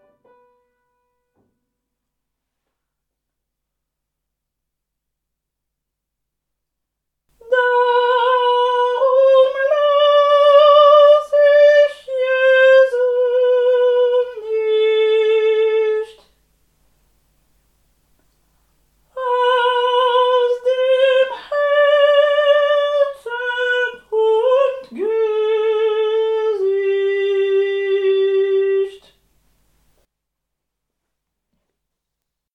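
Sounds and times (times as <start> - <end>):
sopranos singing: 7.4 - 16.3, 19.2 - 29.2.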